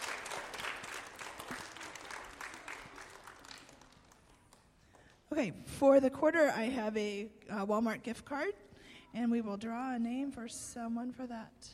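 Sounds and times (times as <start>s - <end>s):
crowd applause: 0.0s - 5.0s
speech: 5.4s - 11.7s.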